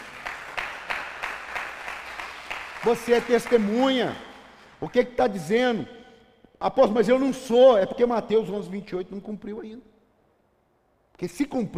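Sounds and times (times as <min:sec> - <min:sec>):
audience applauding: 0:00.0 - 0:04.8
speech: 0:02.8 - 0:06.0, 0:06.6 - 0:09.9, 0:11.2 - 0:11.7.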